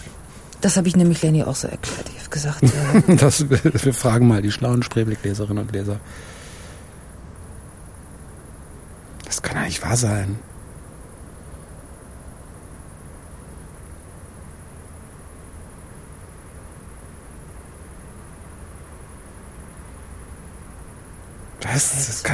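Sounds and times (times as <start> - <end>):
crickets chirping: 0.0 - 22.3
low background hiss: 0.0 - 22.3
speech: 0.6 - 6.4, 9.5 - 10.5, 21.8 - 22.3
laughter: 2.6 - 6.0.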